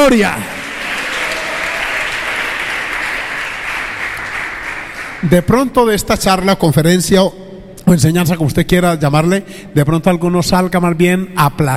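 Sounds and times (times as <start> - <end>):
speech: 0.0 - 0.6, 5.2 - 11.7
audience applause: 0.4 - 5.3.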